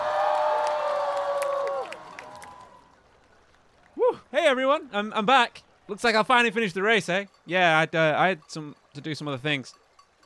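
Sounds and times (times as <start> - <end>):
crowd cheering: 0.0 - 4.2
speech: 4.4 - 9.8.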